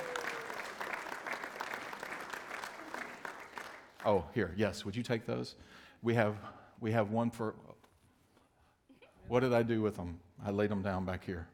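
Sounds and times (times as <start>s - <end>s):
audience clapping: 0.0s - 4.3s
speech: 4.0s - 7.7s, 9.3s - 11.5s.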